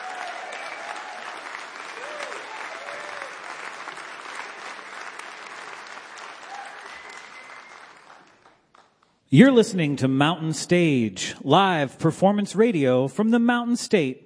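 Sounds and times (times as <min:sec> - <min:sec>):
audience applause: 0:00.0 - 0:09.0
speech: 0:09.3 - 0:14.2.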